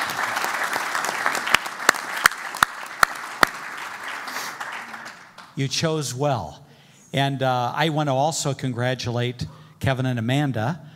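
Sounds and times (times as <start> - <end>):
Hope Church congregation applauding: 0.0 - 5.6
sharp individual claps: 0.0 - 5.6
speech: 5.6 - 10.9.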